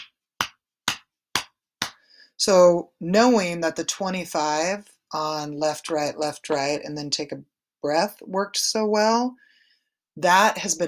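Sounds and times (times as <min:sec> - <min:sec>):
hand slapping chest below the collarbone: 0:00.0 - 0:02.1
speech: 0:02.4 - 0:09.5, 0:10.2 - 0:10.8.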